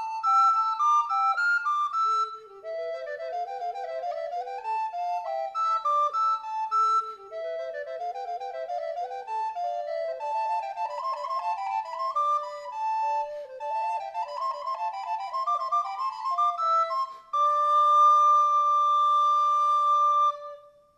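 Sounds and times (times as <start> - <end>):
Moeck Consort SA recorder playing: 0.0 - 20.8.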